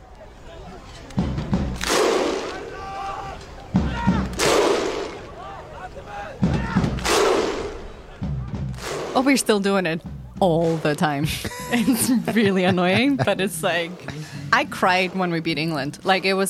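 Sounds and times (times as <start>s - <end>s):
Viking thunder clap by stadium crowd: 1.1s - 9.2s
speech: 9.2s - 16.4s
laughter: 11.2s - 14.9s.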